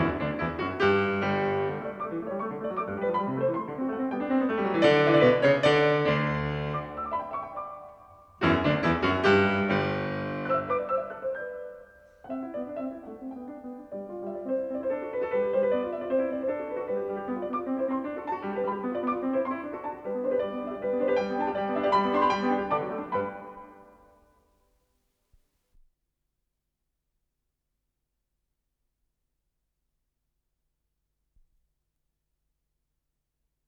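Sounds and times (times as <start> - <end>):
fortepiano sonata played vivace: 0.0 - 24.5.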